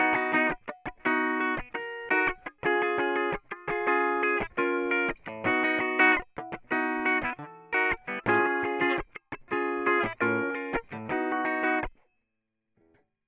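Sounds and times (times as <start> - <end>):
strumming: 0.0 - 11.9.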